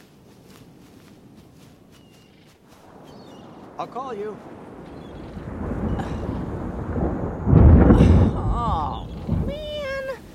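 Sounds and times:
rain: 2.6 - 10.3
thunder: 2.8 - 10.3
speech: 3.8 - 4.6.

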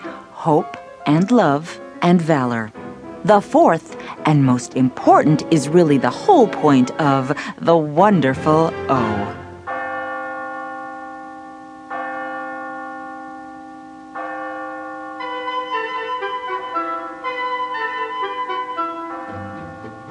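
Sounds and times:
speech: 0.4 - 9.4
ponderous tower clock striking twelve: 8.0 - 20.0.

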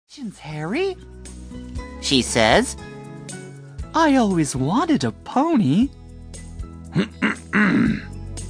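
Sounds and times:
speech: 0.1 - 2.9, 3.9 - 6.0, 6.9 - 8.1
man clearing his throat: 6.9 - 8.2.

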